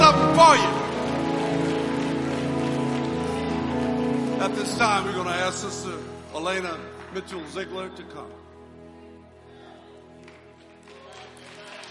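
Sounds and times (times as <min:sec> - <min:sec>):
audience hand clap: 0:00.0 - 0:04.9, 0:06.8 - 0:07.5, 0:10.2 - 0:11.8
speech: 0:00.4 - 0:00.8, 0:04.4 - 0:08.4.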